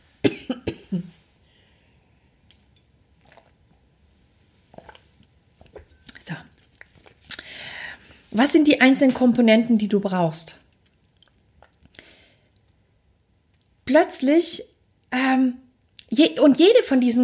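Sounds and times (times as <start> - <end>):
throaty cough-like burst: 0.2 - 1.2
person sipping and swallowing a drink: 2.4 - 4.0, 4.6 - 7.9, 10.7 - 12.8
speech: 8.4 - 10.6, 14.0 - 14.7, 16.2 - 17.2.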